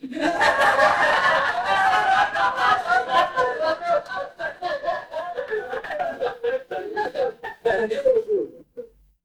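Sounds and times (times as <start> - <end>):
crowd laughing: 0.0 - 8.6.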